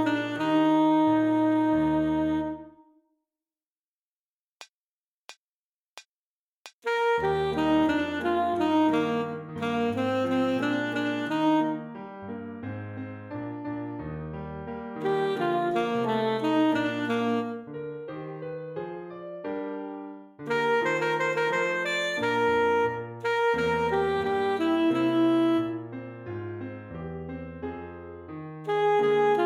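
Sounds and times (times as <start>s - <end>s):
alto minuet allegro: 0.0s - 3.0s, 6.9s - 12.3s, 15.0s - 18.0s, 20.4s - 26.5s, 28.7s - 29.4s.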